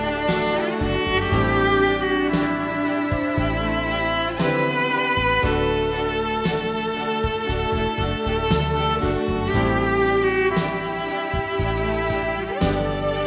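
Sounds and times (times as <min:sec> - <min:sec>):
ambient cello: 0:00.0 - 0:13.2.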